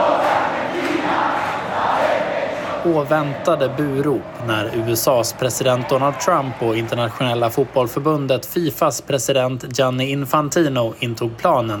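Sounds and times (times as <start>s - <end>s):
Argentine fans singing together: 0.0s - 4.5s
speech: 2.8s - 11.7s.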